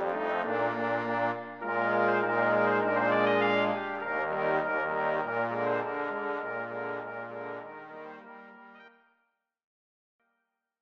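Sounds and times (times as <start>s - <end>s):
brass quintet playing polka: 0.0s - 8.9s.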